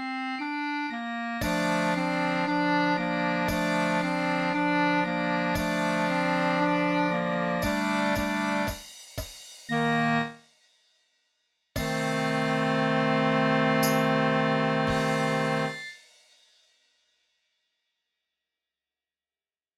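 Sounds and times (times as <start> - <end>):
concert duet: 0.0 - 8.8, 9.7 - 10.4, 11.8 - 15.9.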